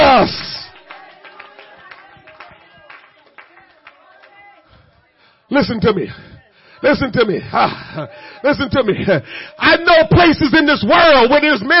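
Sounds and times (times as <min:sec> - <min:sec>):
audience clapping hands: 0:00.0 - 0:05.1
speech: 0:05.5 - 0:11.7.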